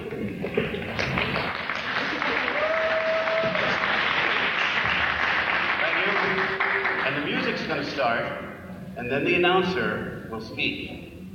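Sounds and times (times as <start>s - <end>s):
crowd applause: 0.0s - 7.7s
speech: 8.0s - 11.0s.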